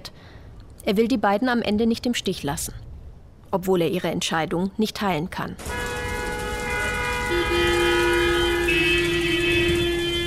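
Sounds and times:
speech: 0.8s - 2.9s, 3.5s - 5.9s
S-Bahn commuter train running: 5.6s - 10.2s.

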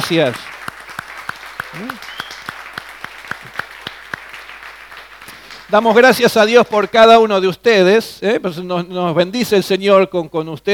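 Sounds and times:
audience applauding: 0.0s - 6.2s
speech: 0.1s - 0.6s, 1.7s - 2.1s, 5.7s - 10.7s.

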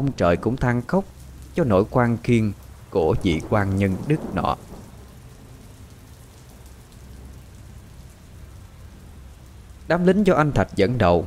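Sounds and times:
speech: 0.0s - 4.7s, 9.9s - 11.2s
heavy rain pouring: 0.0s - 11.2s
deep low rumble: 1.1s - 9.7s.

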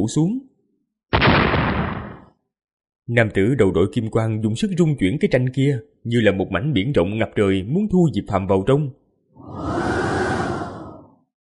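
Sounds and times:
speech: 0.0s - 0.5s, 3.1s - 9.8s
howling wind whoosh: 9.4s - 11.2s.

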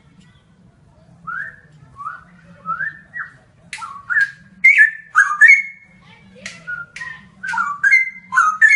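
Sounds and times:
bird song of clear whistled phrases: 1.2s - 5.9s, 6.5s - 8.7s.

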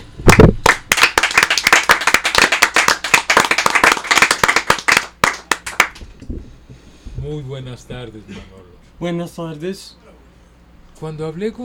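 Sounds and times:
audience clapping to welcome a musician: 0.3s - 6.1s
speech: 7.3s - 10.0s, 11.0s - 11.6s.

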